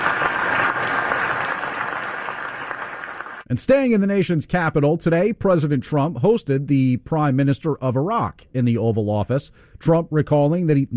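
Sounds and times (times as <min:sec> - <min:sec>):
applause in the Senate chamber: 0:00.0 - 0:03.5
speech: 0:03.5 - 0:10.9.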